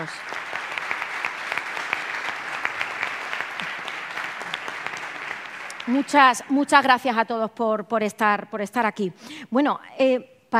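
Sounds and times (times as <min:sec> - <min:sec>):
speech: 0:00.0 - 0:00.4, 0:05.9 - 0:10.5
audience applause: 0:00.0 - 0:06.8.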